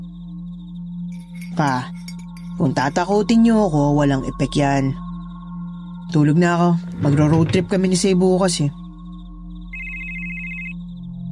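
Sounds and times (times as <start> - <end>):
steady low hum: 0.0 - 11.3
speech: 1.6 - 2.0, 2.6 - 5.0, 6.1 - 8.8
telephone ringing with a bright electronic trill: 9.8 - 10.8.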